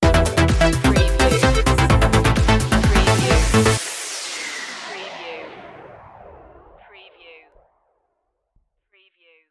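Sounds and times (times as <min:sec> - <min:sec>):
malfunction sting: 0:01.0 - 0:07.9.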